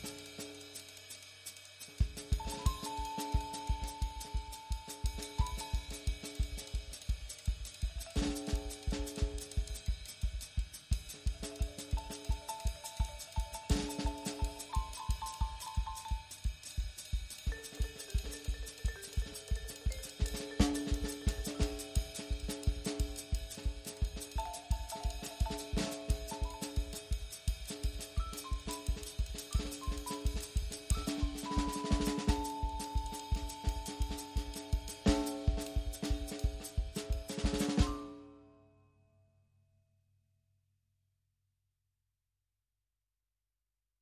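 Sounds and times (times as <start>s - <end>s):
swing music: 2.1s - 9.9s, 10.7s - 38.1s.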